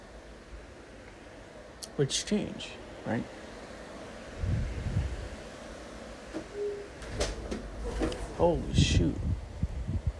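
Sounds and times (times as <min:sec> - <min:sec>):
speech: 0:01.9 - 0:03.4, 0:08.4 - 0:09.3
wind buffeting the microphone: 0:04.3 - 0:05.4, 0:07.1 - 0:10.1.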